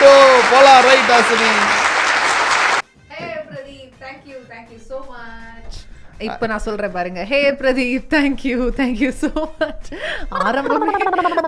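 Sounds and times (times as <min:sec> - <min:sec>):
audience applause: 0:00.0 - 0:02.8
speech: 0:00.5 - 0:01.8, 0:06.2 - 0:11.4
laughter: 0:09.2 - 0:11.4.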